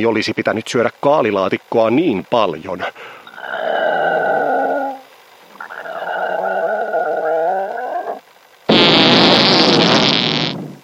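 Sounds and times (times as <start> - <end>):
speech: 0.0 - 4.2
harsh hissing blast of noise: 2.8 - 10.8
loud buzzy farts: 8.7 - 10.8.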